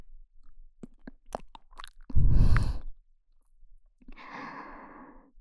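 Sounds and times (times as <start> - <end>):
wet kissing: 0.9 - 2.7.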